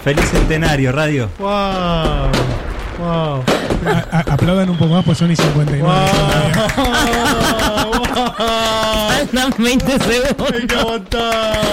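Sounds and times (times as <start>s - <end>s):
fireworks bursting: 0.0s - 11.7s
speech: 0.0s - 11.7s
laughter: 3.5s - 4.8s, 5.8s - 11.7s.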